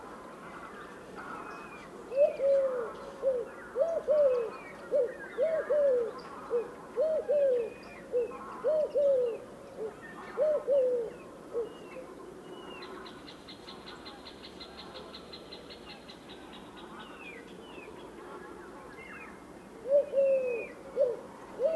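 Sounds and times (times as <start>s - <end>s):
Eurasian collared dove Streptopelia decaocto: 1.2s - 12.3s, 19.8s - 21.7s.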